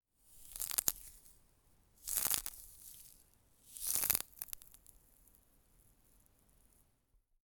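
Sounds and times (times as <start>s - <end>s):
foam being pinched and folded: 0.4s - 1.4s, 2.0s - 5.0s.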